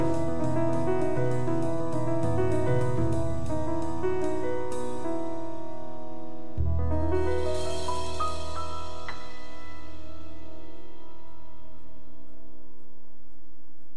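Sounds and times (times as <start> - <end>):
jazz music: 0.0 - 5.4, 6.6 - 11.4.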